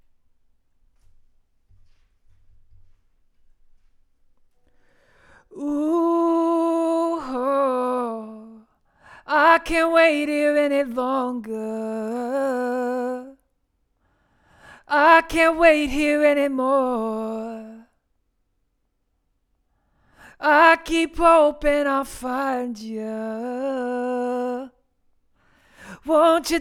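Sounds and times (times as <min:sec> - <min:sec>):
vocals: 0:04.8 - 0:13.6, 0:14.2 - 0:18.2, 0:20.0 - 0:26.6.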